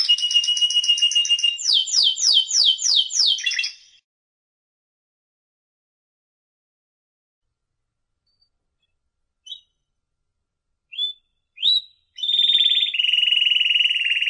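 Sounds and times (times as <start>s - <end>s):
canary song: 0.0s - 4.0s, 8.2s - 9.9s, 10.9s - 14.2s.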